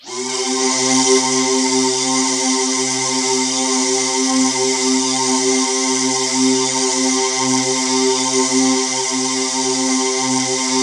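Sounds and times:
synth line: 0.0 - 10.8.

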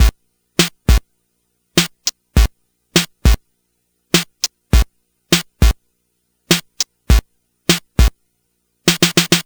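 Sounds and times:
Game Boy 8-bit drum break loop: 0.0 - 1.0, 1.8 - 3.4, 4.2 - 5.8, 6.5 - 8.2, 8.9 - 9.4.

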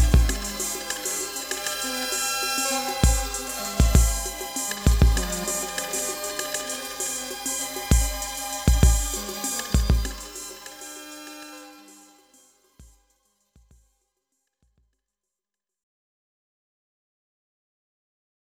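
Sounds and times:
PPG 2.3 synthesizer: 0.0 - 13.0.

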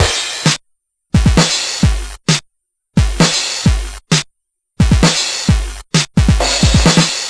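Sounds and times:
Game Boy progressive rock drum loop: 0.0 - 0.6, 1.2 - 2.4, 3.0 - 4.2, 4.8 - 7.2.

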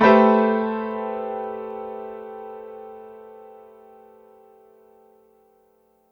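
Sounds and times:
layered piano stack in A minor: 0.0 - 5.4.

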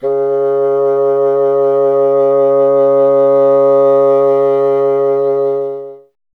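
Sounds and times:
bassoon playing C: 0.0 - 6.2.

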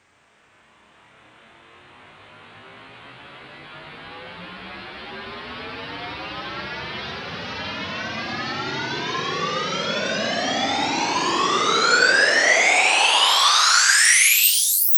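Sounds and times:
rising sweep sound effect: 6.8 - 14.9.

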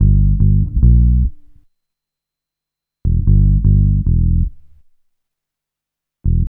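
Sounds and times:
bass groove: 0.0 - 1.4, 3.1 - 4.6, 6.3 - 6.4.

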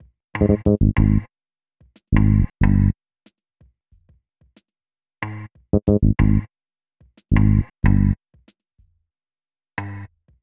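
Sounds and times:
hip-hop bass: 0.4 - 1.3, 2.2 - 2.9, 5.8 - 6.5, 7.3 - 8.2.

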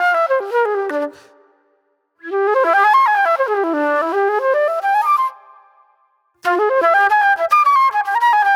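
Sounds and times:
raw funk flute: 0.0 - 1.3, 2.2 - 5.5, 6.4 - 8.5.

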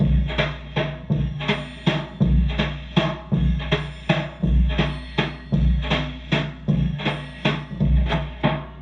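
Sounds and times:
classic drum machine rhythm loop: 0.0 - 8.7.

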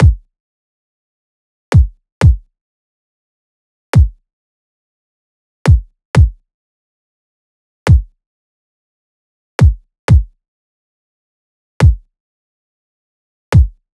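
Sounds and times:
kick drum loop at 122 bpm: 0.0 - 0.3, 1.7 - 2.4, 4.0 - 4.2, 5.7 - 6.4, 7.9 - 8.1, 9.6 - 10.3, 11.8 - 12.0, 13.6 - 13.8.

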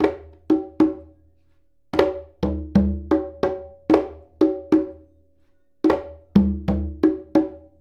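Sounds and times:
congas: 0.0 - 7.7.

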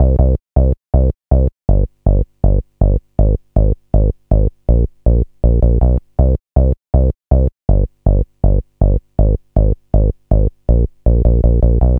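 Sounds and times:
bass loops: 0.0 - 11.9.

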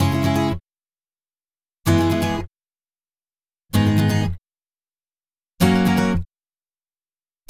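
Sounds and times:
acoustic Latin guitar in C sharp minor: 0.0 - 0.6, 1.9 - 2.5, 3.8 - 4.4, 5.6 - 6.2.

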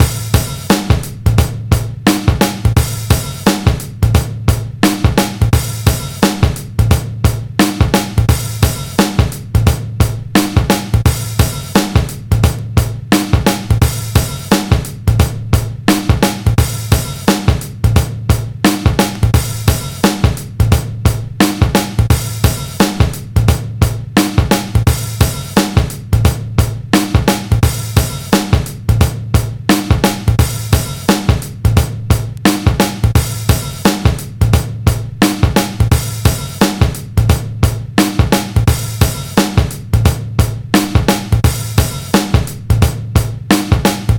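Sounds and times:
breakbeat: 0.0 - 44.1.

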